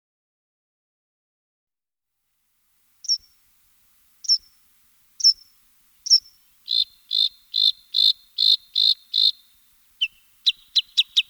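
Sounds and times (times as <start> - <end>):
bluethroat singing: 4.2 - 4.5, 5.2 - 11.2.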